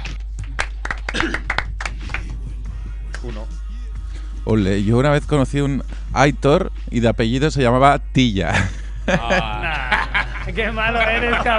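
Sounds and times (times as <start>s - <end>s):
people clapping: 0.0s - 2.4s
speech: 4.5s - 11.5s
laughter: 8.5s - 11.5s.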